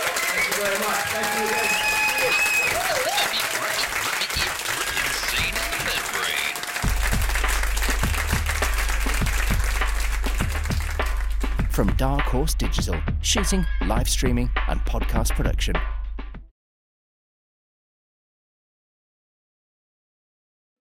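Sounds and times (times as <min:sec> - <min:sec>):
cheering voices: 0:00.0 - 0:07.2
live audience applause: 0:00.0 - 0:11.6
speech: 0:00.6 - 0:02.4, 0:11.8 - 0:15.9.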